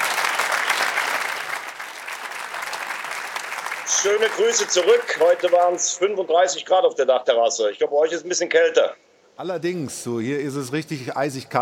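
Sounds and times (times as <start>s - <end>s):
studio audience applause in München: 0.0s - 6.0s
speech: 3.9s - 11.5s.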